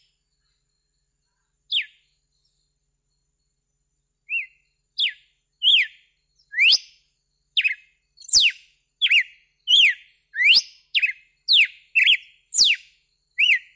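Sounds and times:
red-cowled cardinal whistled song: 1.7 - 2.6, 4.2 - 13.7.

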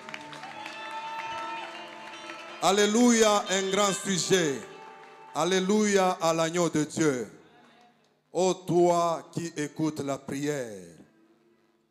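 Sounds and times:
congregation clapping during a Sunday worship service at church: 0.0 - 8.2
speech: 2.6 - 4.7, 5.4 - 7.4, 8.4 - 11.0.

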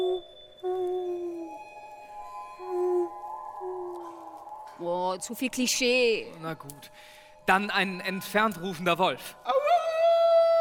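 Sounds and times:
tawny owl hooting at night in the countryside: 0.0 - 4.6
faint higher tone: 0.0 - 5.0
speech: 5.1 - 9.5.

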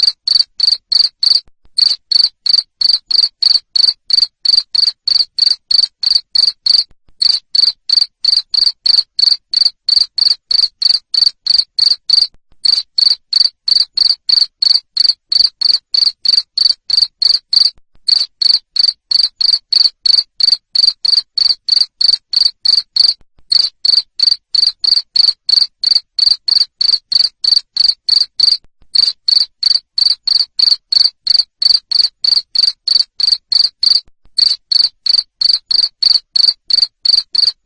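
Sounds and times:
cricket chirping: 0.0 - 37.6.

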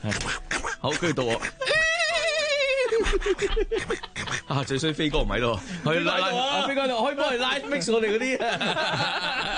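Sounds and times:
speech: 0.0 - 1.6, 3.0 - 9.5
person imitating Donald Duck riding a horse: 0.0 - 2.9
laughter: 1.0 - 4.7, 5.7 - 9.5.

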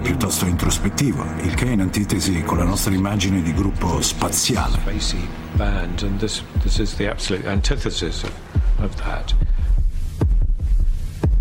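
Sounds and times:
speech: 0.3 - 9.6
soft drum thumps on a drum kit mimicking a heartbeat: 5.6 - 11.4.

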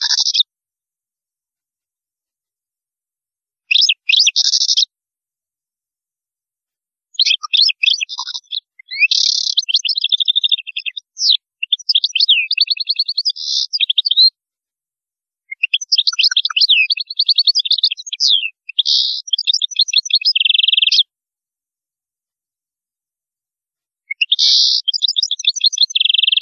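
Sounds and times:
European goldfinch song: 0.0 - 0.5, 3.6 - 4.9, 7.1 - 14.4, 15.6 - 21.1, 24.0 - 26.4.

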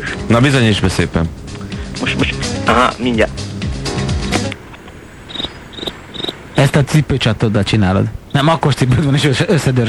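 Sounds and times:
speech: 0.3 - 1.4, 2.1 - 3.4, 6.6 - 9.8
cricket chirping: 5.1 - 6.7.

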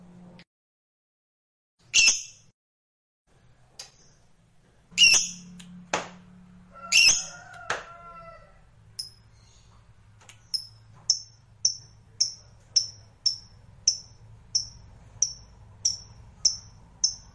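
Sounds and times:
lovebird squawking: 1.9 - 2.4, 5.0 - 5.5, 6.8 - 7.4.

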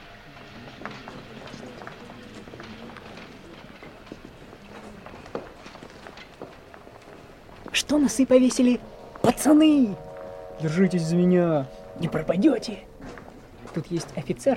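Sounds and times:
footsteps of a group marching in formation: 0.0 - 9.3, 12.9 - 14.5
speech: 7.8 - 10.0, 10.6 - 12.9, 13.8 - 14.5.

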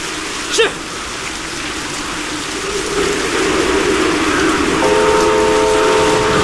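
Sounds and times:
heavy rain hissing during a train test run on a repaired railway section: 0.0 - 6.4
multi-toned train whistle: 4.8 - 6.4.

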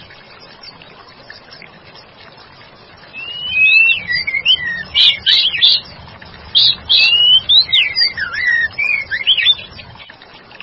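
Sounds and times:
White-rumped shama singing sliding whistle and sharp high notes: 3.2 - 5.8, 6.6 - 9.7.

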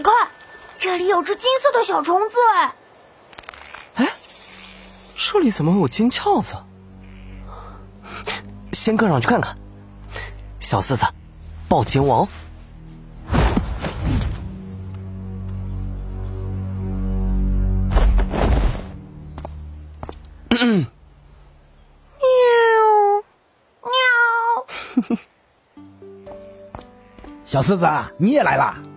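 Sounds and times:
speech: 0.0 - 2.8, 4.0 - 4.2, 5.2 - 6.7, 8.8 - 12.4, 27.6 - 28.9
low rumbling: 4.7 - 23.0
cat meowing: 23.8 - 24.6.

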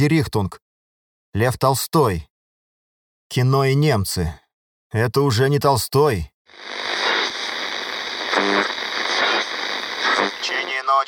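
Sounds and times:
speech: 0.0 - 0.6, 1.3 - 2.3, 3.3 - 7.1
crackling static interference on a radio receiver: 6.5 - 11.0.

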